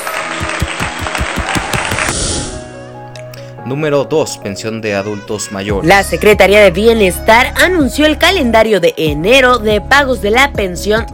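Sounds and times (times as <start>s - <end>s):
applause: 0.0s - 2.2s
speech: 3.7s - 11.1s.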